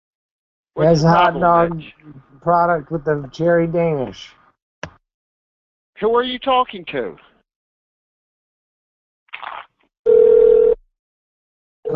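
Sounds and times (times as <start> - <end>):
speech: 0.8 - 4.4, 6.0 - 7.3
telephone ringing: 10.1 - 10.8.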